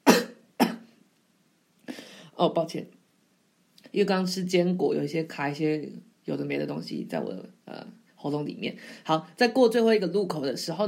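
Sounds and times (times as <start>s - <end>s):
coughing: 0.0s - 0.9s
speech: 2.4s - 3.0s, 3.9s - 10.8s.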